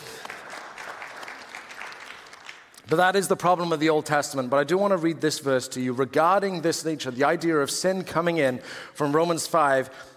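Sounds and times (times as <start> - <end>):
audience applause: 0.0 - 2.8
speech: 2.9 - 10.1.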